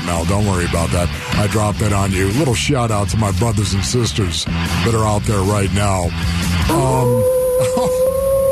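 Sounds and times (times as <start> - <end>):
speech: 0.1 - 8.1
wolf howl sound effect: 6.7 - 8.4.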